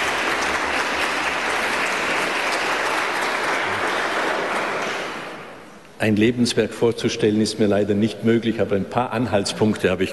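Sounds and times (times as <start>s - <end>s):
audience clapping in a church: 0.0s - 5.5s
speech: 6.0s - 10.1s.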